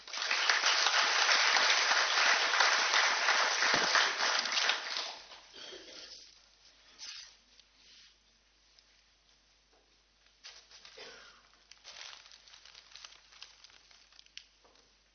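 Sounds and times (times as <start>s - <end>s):
audience applause: 0.0s - 5.5s.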